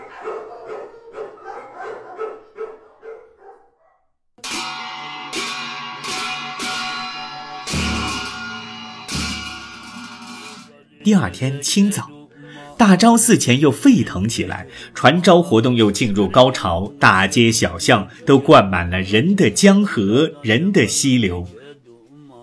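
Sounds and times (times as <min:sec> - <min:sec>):
dogs barking: 0:00.0 - 0:04.1
dense ringing wash with heavy periodic hits: 0:04.4 - 0:10.7
speech: 0:11.1 - 0:12.1, 0:12.8 - 0:21.6.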